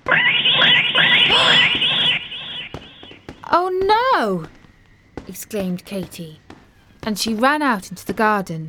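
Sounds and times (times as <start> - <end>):
cat screeching: 0.0 - 3.1
speech: 3.6 - 4.6, 5.4 - 6.4, 7.0 - 8.6.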